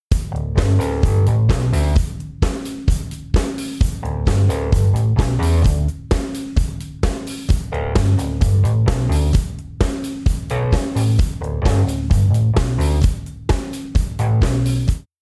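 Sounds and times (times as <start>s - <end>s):
drums: 0.0s - 15.2s
bass: 0.1s - 2.3s, 3.8s - 6.0s, 7.5s - 9.6s, 10.4s - 13.3s, 14.0s - 15.2s.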